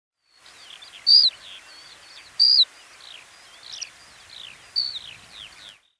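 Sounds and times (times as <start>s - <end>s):
background hiss: 0.2s - 5.9s
black lark whistled calls: 2.4s - 5.8s.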